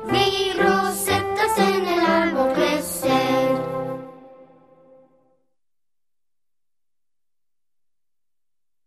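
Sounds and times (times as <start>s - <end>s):
Spanish children's song with words and music: 0.0s - 5.4s.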